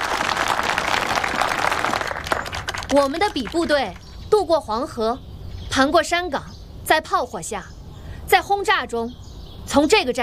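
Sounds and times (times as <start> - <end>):
audience applause: 0.0 - 3.8
speech: 2.9 - 7.7, 8.3 - 10.2.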